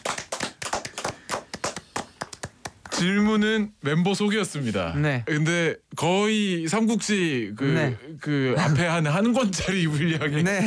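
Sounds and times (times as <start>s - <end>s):
people clapping: 0.0s - 3.1s
speech: 3.0s - 10.6s.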